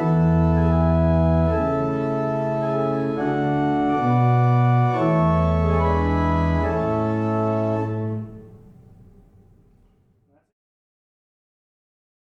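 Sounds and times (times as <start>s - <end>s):
barrel organs playing a single chant: 0.0s - 9.3s.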